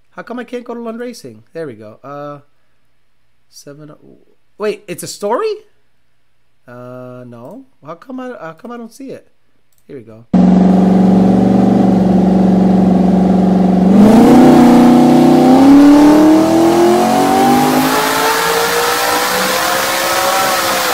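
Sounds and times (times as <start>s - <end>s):
speech: 0.2s - 2.5s, 3.5s - 5.7s, 6.6s - 9.3s, 9.9s - 11.0s
modified Mustang test car engine idling and revving: 10.4s - 20.9s.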